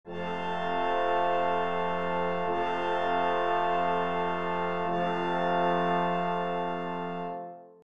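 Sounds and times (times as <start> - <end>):
brass instruments: 0.1 - 7.8.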